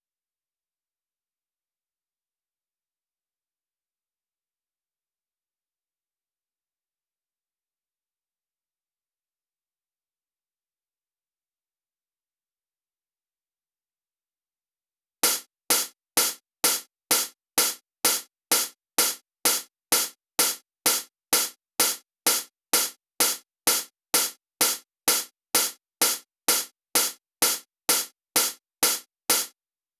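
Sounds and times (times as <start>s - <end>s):
hi-hat at 128 BPM: 15.2s - 29.5s.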